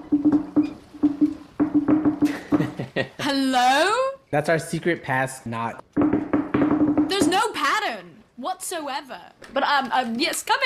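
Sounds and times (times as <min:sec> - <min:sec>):
knocking on a door: 0:00.0 - 0:02.9, 0:05.9 - 0:07.5
speech: 0:03.3 - 0:05.9, 0:08.6 - 0:10.6.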